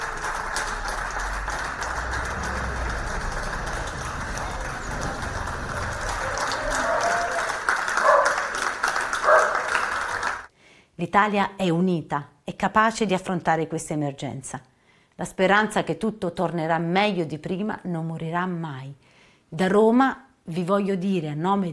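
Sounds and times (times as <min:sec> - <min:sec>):
people applauding from balconies for hospital workers: 0:00.0 - 0:10.5
speech: 0:11.1 - 0:21.7.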